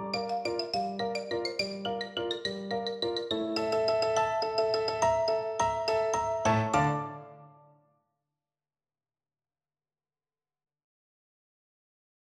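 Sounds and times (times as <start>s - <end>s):
xylophone playing dance music: 0.1s - 7.5s.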